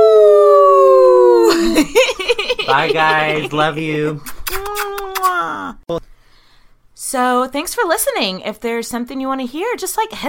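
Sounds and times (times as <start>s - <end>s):
people howling like a wolf: 0.0s - 1.8s
vocal whoops: 0.0s - 1.9s, 4.2s - 5.8s
laughter: 1.4s - 5.1s
speech: 2.7s - 4.3s, 7.1s - 10.2s.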